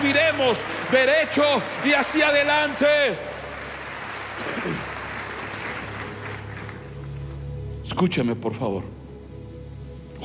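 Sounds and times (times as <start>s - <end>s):
crowd applauding: 0.0s - 7.3s
speech: 0.1s - 3.3s, 8.0s - 9.0s.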